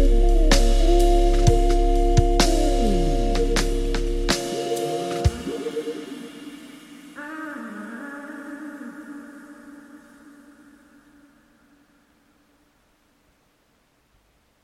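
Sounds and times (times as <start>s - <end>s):
R&B music: 0.0s - 6.9s.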